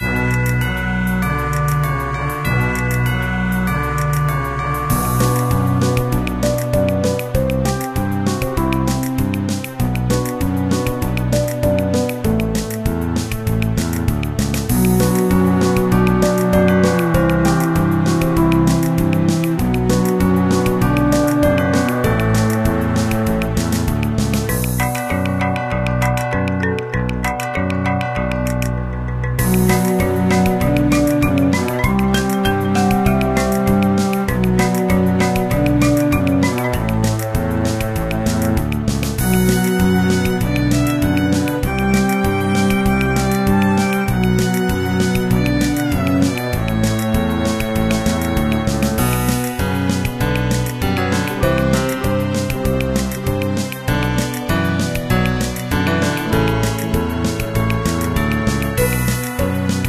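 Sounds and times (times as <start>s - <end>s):
game boss music: 0.0s - 59.8s.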